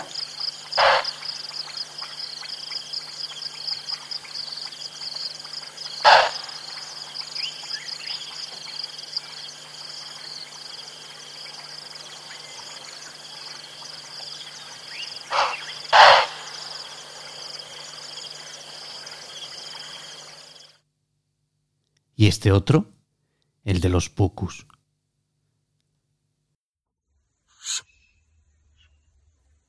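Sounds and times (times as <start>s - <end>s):
impala alarm calls: 0.0s - 2.4s, 5.3s - 10.4s, 11.5s - 20.3s
chorus of insects and frogs: 0.0s - 20.8s
speech: 22.2s - 22.9s, 23.7s - 24.7s.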